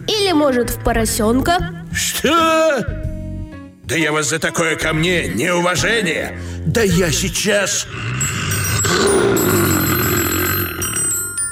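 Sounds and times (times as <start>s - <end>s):
speech: 0.3s - 3.0s, 3.9s - 9.2s
telephone ringing: 8.2s - 11.5s.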